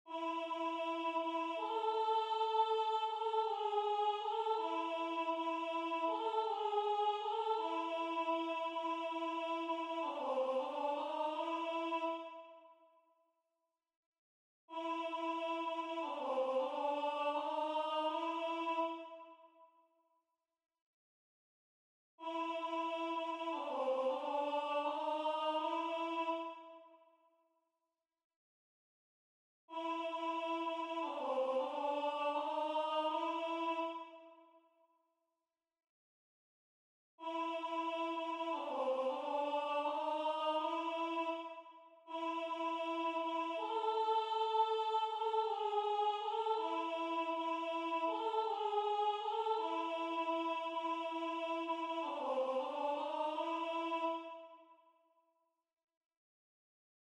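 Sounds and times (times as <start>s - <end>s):
alto singing a religious folk song: 0.0s - 12.6s, 14.7s - 19.3s, 22.2s - 26.8s, 29.7s - 34.4s, 37.2s - 54.6s.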